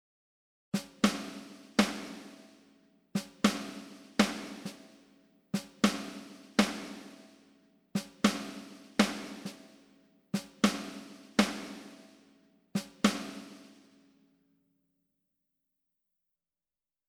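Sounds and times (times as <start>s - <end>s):
Wave Drum snare drum: 0.8s - 2.5s, 3.2s - 4.9s, 5.6s - 7.3s, 8.0s - 9.7s, 10.4s - 12.0s, 12.8s - 13.7s.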